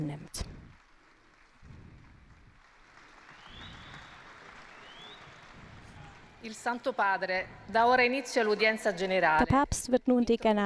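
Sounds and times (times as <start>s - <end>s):
crowd clapping: 0.0s - 7.0s, 8.2s - 9.4s
speech: 6.4s - 10.6s.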